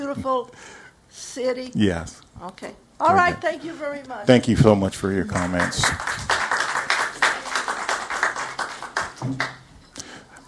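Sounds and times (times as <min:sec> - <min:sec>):
speech: 0:00.1 - 0:06.3, 0:09.3 - 0:09.6
crowd clapping: 0:05.2 - 0:09.7.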